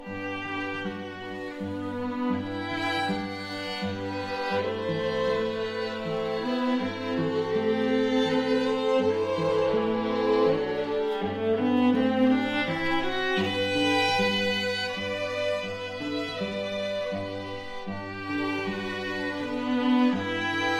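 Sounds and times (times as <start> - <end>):
string ensemble playing: 0.0 - 20.7.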